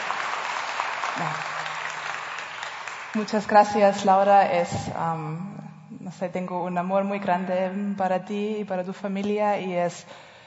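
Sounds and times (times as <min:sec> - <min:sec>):
audience applause: 0:00.0 - 0:03.5
speech: 0:01.2 - 0:01.5, 0:03.1 - 0:10.3.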